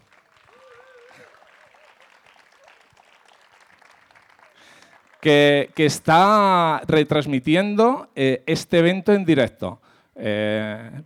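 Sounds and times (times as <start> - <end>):
audience applause: 0.0 - 6.5
speech: 5.2 - 11.0.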